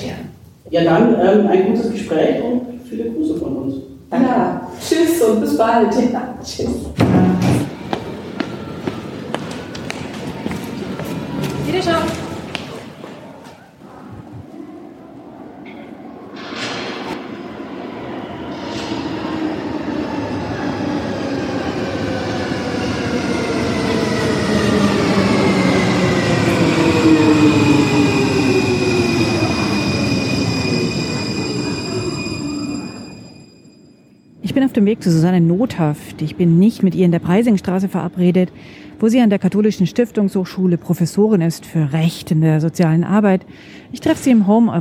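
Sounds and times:
speech: 0:00.7 - 0:07.2, 0:34.9 - 0:44.8
subway train arriving at station: 0:01.0 - 0:41.7.

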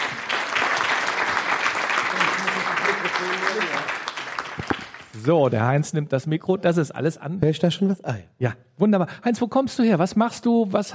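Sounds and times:
audience applause: 0:00.0 - 0:05.4
speech: 0:03.0 - 0:04.0, 0:05.2 - 0:10.9.

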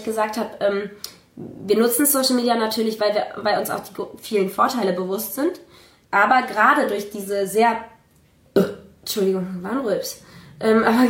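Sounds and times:
speech: 0:00.0 - 0:07.9, 0:08.6 - 0:11.0
woman burping: 0:08.5 - 0:08.9.

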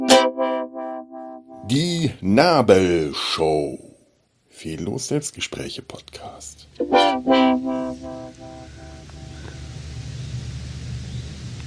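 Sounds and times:
speech: 0:01.6 - 0:03.8, 0:04.6 - 0:07.8
airplane flying overhead: 0:06.9 - 0:11.6.

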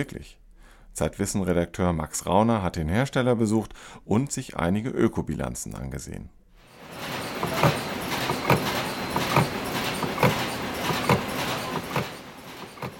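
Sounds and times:
speech: 0:00.0 - 0:00.4, 0:01.0 - 0:06.4, 0:07.5 - 0:07.9
plastic bag factory machinery: 0:06.7 - 0:12.9.

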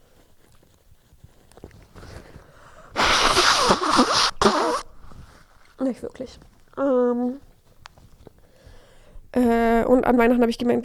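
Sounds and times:
person blowing nose: 0:02.9 - 0:05.4
speech: 0:05.9 - 0:07.5, 0:09.9 - 0:10.8.

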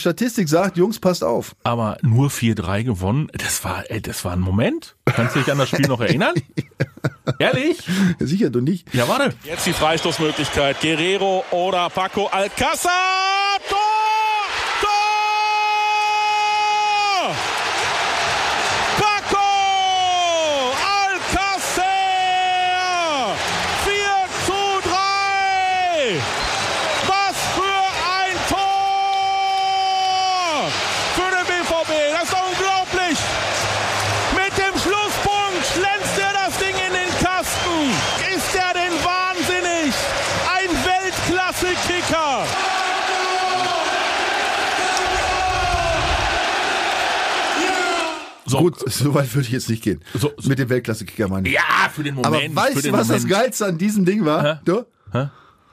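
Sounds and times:
speech: 0:00.0 - 0:13.9, 0:48.5 - 0:55.4
laughter: 0:05.0 - 0:08.2
stadium crowd noise: 0:08.9 - 0:48.5.

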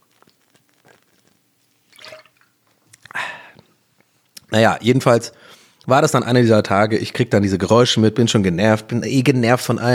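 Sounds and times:
person sipping a drink: 0:00.0 - 0:03.7
speech: 0:04.5 - 0:09.9.

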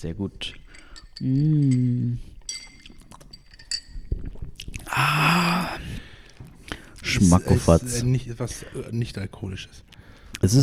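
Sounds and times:
speech: 0:00.0 - 0:00.6, 0:01.2 - 0:02.3, 0:05.0 - 0:05.9, 0:07.1 - 0:10.6
glasses clinking in a toast: 0:00.0 - 0:06.0
long drawn-out voice: 0:04.9 - 0:06.0.

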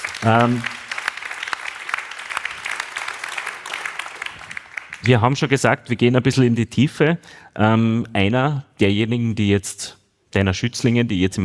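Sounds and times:
audience applause: 0:00.0 - 0:05.3
speech: 0:00.2 - 0:00.7, 0:05.0 - 0:11.4.

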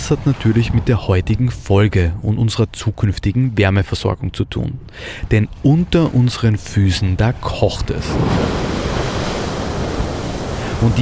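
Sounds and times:
speech: 0:00.1 - 0:09.0, 0:10.8 - 0:11.0
geyser erupting in Iceland: 0:08.0 - 0:11.0.

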